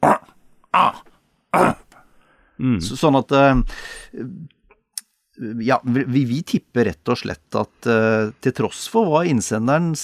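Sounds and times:
moose or deer grunting call: 0.0s - 2.0s
speech: 0.7s - 1.8s, 2.6s - 4.6s, 5.4s - 10.0s.

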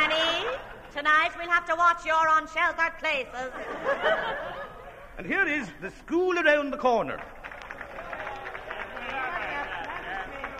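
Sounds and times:
laughter: 0.0s - 1.2s, 3.4s - 5.2s
speech: 1.0s - 7.4s
sustained applause from a large crowd: 7.1s - 10.5s.

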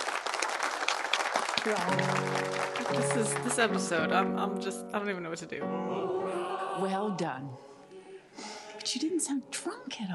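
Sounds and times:
crowd applauding: 0.0s - 4.2s
speech: 1.6s - 7.7s, 8.4s - 10.1s.

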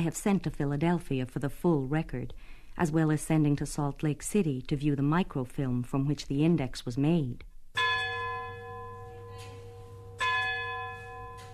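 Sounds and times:
speech: 0.0s - 7.5s
town clock bell striking midnight: 7.8s - 11.5s.

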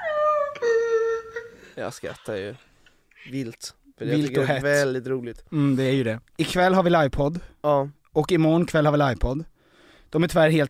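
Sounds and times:
dog howling on hearing a song: 0.0s - 1.5s
speech: 1.8s - 9.5s, 10.1s - 10.6s.

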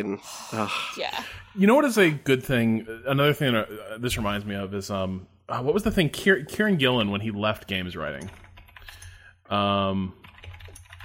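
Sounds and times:
speech: 0.0s - 8.4s, 9.5s - 10.2s
computer keyboard tapping while searching for something: 8.1s - 9.2s, 10.2s - 11.0s.

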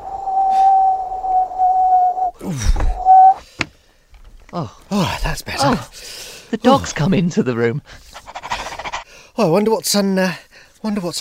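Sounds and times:
wind whistling outside: 0.0s - 3.4s
speech: 4.5s - 8.0s, 9.4s - 11.1s.

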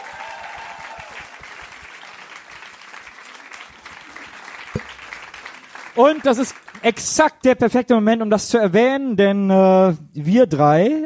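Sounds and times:
audience applause: 0.0s - 6.8s
speech: 6.0s - 11.0s.

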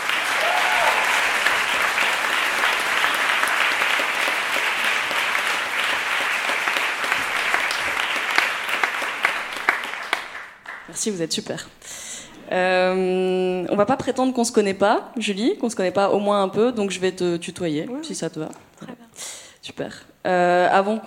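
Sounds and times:
audience applause: 0.0s - 10.9s
speech: 11.0s - 11.9s, 12.5s - 18.7s, 19.8s - 21.0s.

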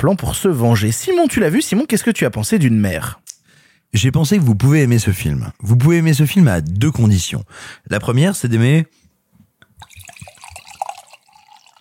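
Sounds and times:
speech: 0.0s - 3.3s, 3.9s - 9.0s
wine poured from a bottle into a glass: 9.8s - 11.7s.

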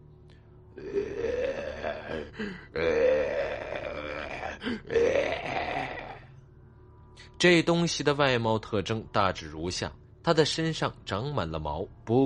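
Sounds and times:
zombie's slurred guttural low moan: 0.8s - 6.3s
speech: 2.2s - 3.6s, 7.4s - 12.2s.

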